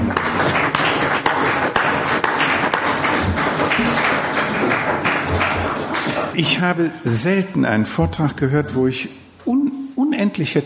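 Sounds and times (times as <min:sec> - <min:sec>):
audience applause: 0:00.0 - 0:06.4
speech: 0:06.4 - 0:10.6.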